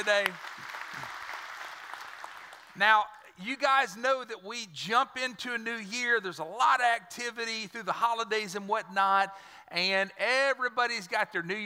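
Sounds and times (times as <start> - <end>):
speech: 0.0 - 0.6, 2.8 - 11.6
audience giving a hand clap: 0.0 - 2.8.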